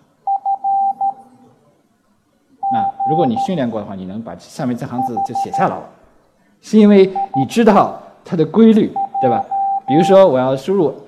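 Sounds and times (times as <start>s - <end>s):
Morse code electronic beeps: 2.6s - 3.6s, 5.0s - 5.8s, 7.1s - 7.6s, 9.0s - 10.2s
speech: 2.7s - 6.0s, 6.6s - 11.0s.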